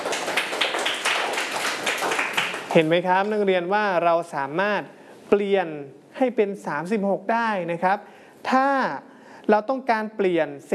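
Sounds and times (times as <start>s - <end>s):
students clapping for a classmate: 0.0s - 2.9s
speech: 2.8s - 10.7s.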